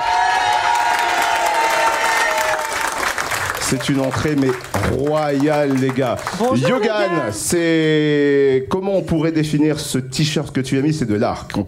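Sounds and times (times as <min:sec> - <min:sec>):
applause and cheering for guests: 0:00.0 - 0:07.3
speech: 0:03.7 - 0:11.6.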